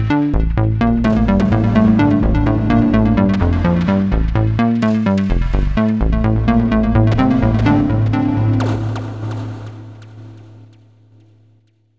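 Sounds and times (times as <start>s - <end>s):
delay modulation effect: 1.0s - 10.4s.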